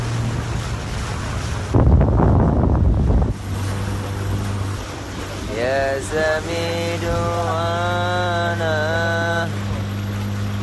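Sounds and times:
low hum: 0:00.0 - 0:10.6
waves washing at sea on the Sembilangan waters: 0:00.0 - 0:10.6
wind rushing at sea on the Sembilangan waters: 0:01.3 - 0:04.8
speech: 0:06.0 - 0:07.7.

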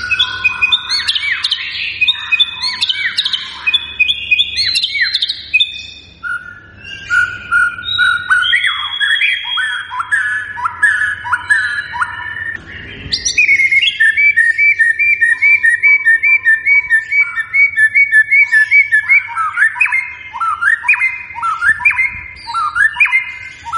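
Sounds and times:
white-rumped shama singing: 0:00.0 - 0:23.7.

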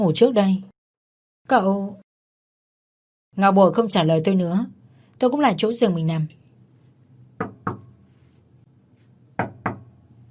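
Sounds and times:
speech: 0:00.0 - 0:00.7, 0:01.5 - 0:02.0, 0:03.3 - 0:06.4
knocking on a door: 0:07.4 - 0:07.9, 0:09.4 - 0:09.9.

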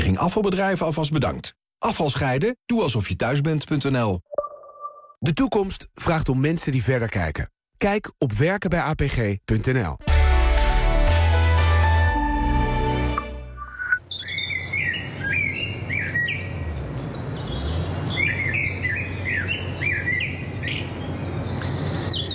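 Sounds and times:
speech: 0:00.1 - 0:04.4, 0:05.2 - 0:10.1
brief music: 0:10.0 - 0:14.0
blackbird and robin chirping and warbling: 0:13.6 - 0:22.3.

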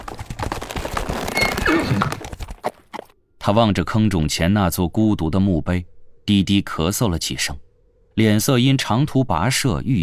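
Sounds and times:
hoofbeats: 0:00.0 - 0:03.1
horse whinnying as it is reined in: 0:01.2 - 0:02.3
speech: 0:03.5 - 0:10.0.

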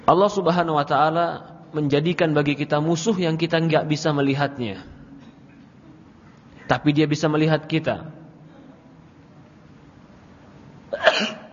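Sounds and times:
speech: 0:00.1 - 0:04.9, 0:06.7 - 0:08.2
sneeze: 0:10.9 - 0:11.5.

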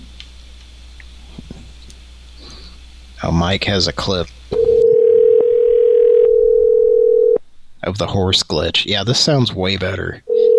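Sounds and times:
speech: 0:03.2 - 0:04.4, 0:07.8 - 0:10.5
telephone dial tone: 0:04.6 - 0:07.4, 0:10.3 - 0:10.5.

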